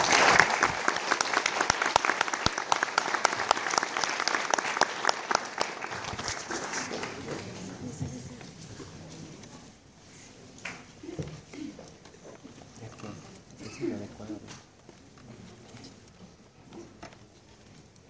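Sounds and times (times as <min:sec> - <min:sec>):
strong audience applause: 0:00.0 - 0:07.7.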